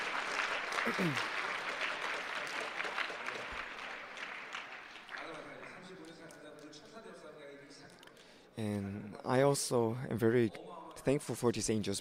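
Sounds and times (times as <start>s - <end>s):
audience applause: 0.0s - 6.0s
speech: 0.8s - 1.3s, 8.6s - 12.0s.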